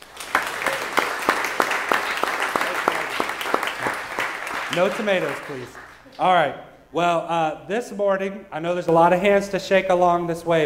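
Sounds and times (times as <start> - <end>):
audience applauding: 0.0 - 6.1
speech: 4.8 - 10.6.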